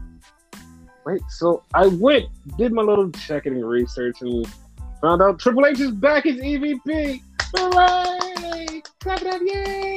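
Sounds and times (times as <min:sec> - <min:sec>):
speech: 0:01.0 - 0:08.2, 0:09.0 - 0:09.9
brisk steady clapping: 0:07.2 - 0:09.9.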